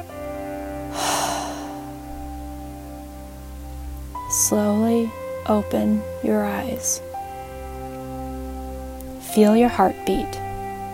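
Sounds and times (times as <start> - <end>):
puffing breath blown out through the mouth: 0.9 - 2.0
steady low musical drone: 0.9 - 4.8
speech: 4.4 - 7.1, 9.3 - 10.4.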